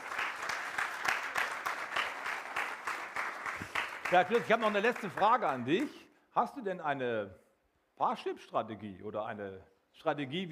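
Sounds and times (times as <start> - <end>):
audience applause: 0.0 - 5.8
speech: 4.1 - 7.4, 8.0 - 10.4.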